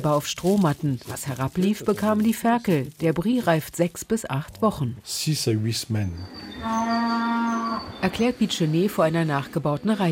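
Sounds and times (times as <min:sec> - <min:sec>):
speech: 0:00.0 - 0:07.1, 0:08.0 - 0:10.1
cattle mooing: 0:06.4 - 0:08.0.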